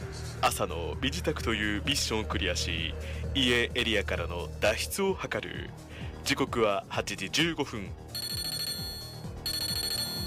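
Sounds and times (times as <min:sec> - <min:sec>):
speech: 0:00.4 - 0:08.1
email notification ringtone from a phone in a video game: 0:08.1 - 0:10.2.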